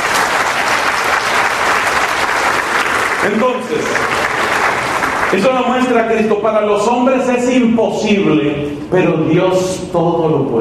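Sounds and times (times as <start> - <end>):
audience applauding: 0.0 - 6.1
speech: 3.2 - 4.2, 5.3 - 10.6.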